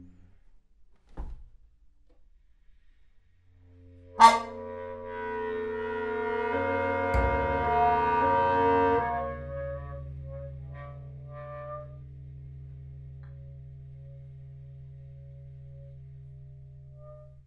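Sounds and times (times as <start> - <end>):
trombone: 4.0 - 10.0.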